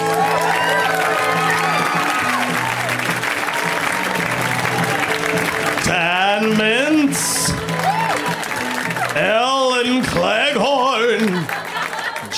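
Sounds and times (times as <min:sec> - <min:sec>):
whoops and cheers: 0:00.0 - 0:05.4, 0:07.2 - 0:09.2
crowd applauding: 0:00.0 - 0:12.3
laughter: 0:00.1 - 0:12.3.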